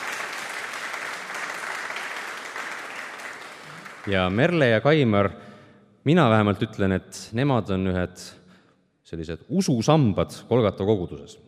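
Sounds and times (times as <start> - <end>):
church congregation clapping for a couple's wedding anniversary: 0.0 - 4.8
speech: 4.0 - 8.4, 9.1 - 11.4.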